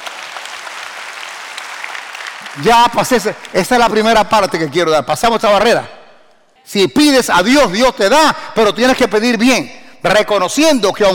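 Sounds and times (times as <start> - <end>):
audience applause: 0.0 - 3.3
speech: 2.5 - 6.0, 6.7 - 11.1.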